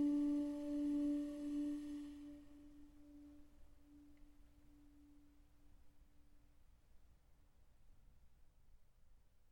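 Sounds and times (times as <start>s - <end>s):
instrumental lament: 0.0s - 4.3s.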